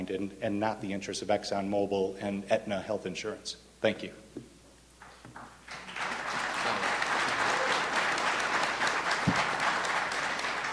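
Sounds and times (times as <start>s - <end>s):
speech: 0.0s - 4.2s
audience applause: 5.7s - 10.7s.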